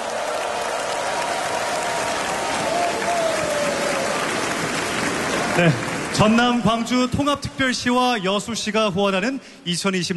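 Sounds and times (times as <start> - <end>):
audience applause for children's choir: 0.0 - 7.1
speech: 5.6 - 10.1.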